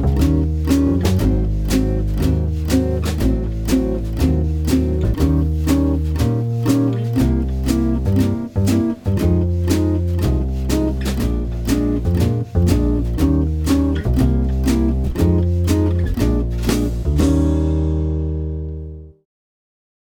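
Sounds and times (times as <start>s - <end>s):
jazz blues jazz guitar in E flat major: 0.0s - 19.2s.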